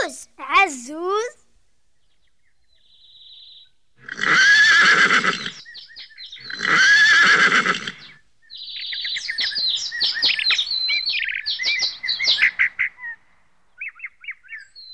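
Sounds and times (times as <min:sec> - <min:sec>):
birds chirping: 0:00.0 - 0:14.9
speech: 0:00.1 - 0:01.4
horse neighing: 0:04.0 - 0:05.6, 0:06.4 - 0:08.1.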